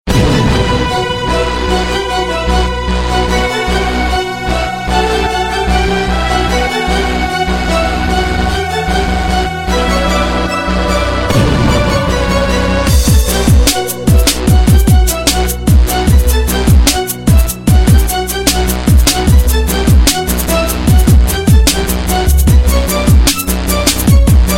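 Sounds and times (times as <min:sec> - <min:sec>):
hip hop beat: 0:00.1 - 0:24.5.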